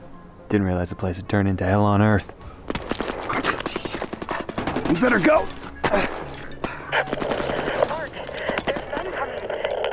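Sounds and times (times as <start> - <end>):
speech: 0.5 - 2.8, 4.9 - 6.2, 6.9 - 7.4
gunshots: 2.7 - 6.1, 6.9 - 9.9.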